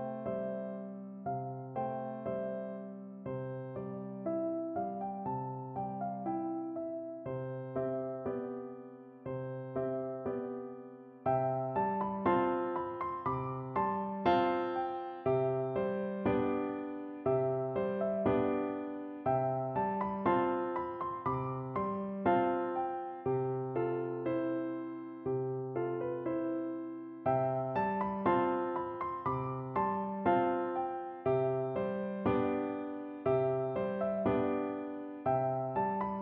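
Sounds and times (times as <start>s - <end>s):
piano lullaby: 0.0s - 36.1s.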